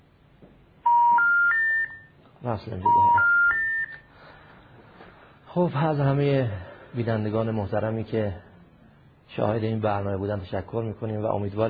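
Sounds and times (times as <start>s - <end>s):
telephone dialing tones: 0.8s - 2.1s, 2.9s - 4.0s
speech: 2.4s - 3.4s, 5.6s - 8.5s, 9.3s - 11.6s.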